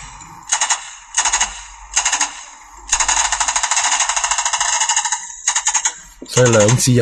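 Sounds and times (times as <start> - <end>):
WWII submachine gun with a drum magazine firing automatically: 0.5 - 6.9
speech: 6.4 - 7.0.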